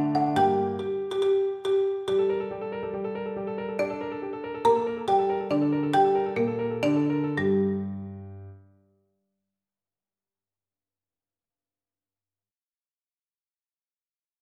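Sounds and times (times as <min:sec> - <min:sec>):
marimba playing a classical symphony: 0:00.0 - 0:02.5, 0:03.8 - 0:08.4.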